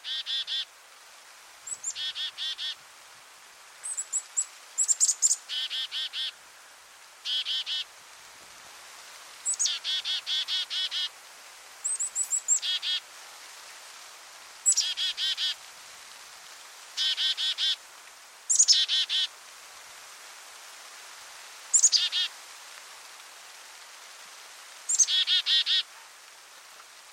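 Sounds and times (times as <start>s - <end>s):
Black-capped chickadee calling: 0.0s - 0.7s, 1.7s - 2.8s, 3.8s - 6.4s, 7.2s - 7.9s, 9.4s - 11.1s, 11.8s - 13.0s, 14.6s - 15.6s, 17.0s - 17.8s, 18.5s - 19.3s, 21.7s - 22.3s, 24.9s - 26.0s.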